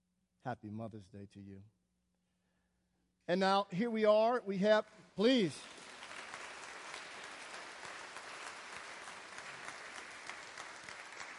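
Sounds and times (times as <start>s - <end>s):
speech: 0.4s - 1.8s, 3.3s - 5.8s
large audience applause: 5.2s - 11.3s.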